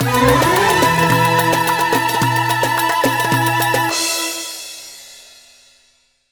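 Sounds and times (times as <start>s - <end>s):
winning jingle: 0.0s - 4.2s.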